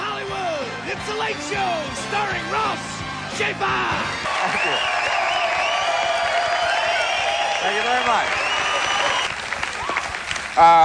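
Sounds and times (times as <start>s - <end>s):
speech: 1.0s - 5.0s, 7.6s - 8.4s, 10.6s - 10.8s
studio audience applause: 3.9s - 10.8s.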